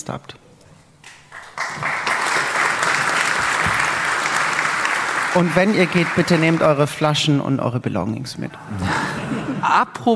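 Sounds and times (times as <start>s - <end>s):
speech: 0.0s - 0.5s, 1.8s - 2.1s, 5.3s - 10.1s
audience applause: 1.3s - 7.1s.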